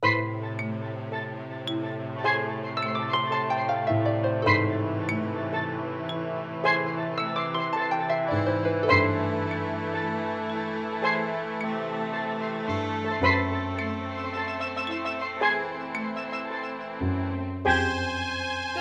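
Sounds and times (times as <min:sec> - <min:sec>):
dark harp music: 0:00.0 - 0:18.7.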